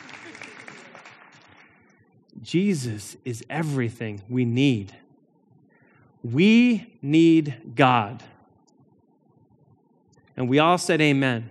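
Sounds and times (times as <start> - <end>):
audience clapping: 0.0 - 2.1
speech: 2.5 - 5.0, 6.2 - 8.3, 10.4 - 11.4.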